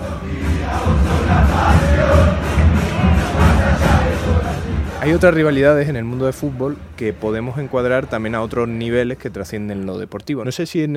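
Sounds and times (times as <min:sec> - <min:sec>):
large football stadium crowd chanting, echoing: 0:00.0 - 0:05.6
speech: 0:05.0 - 0:10.9.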